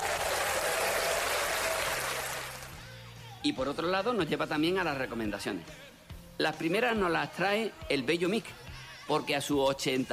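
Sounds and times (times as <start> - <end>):
standing ovation, audience applauding: 0.0 - 2.8
speech: 3.4 - 10.1.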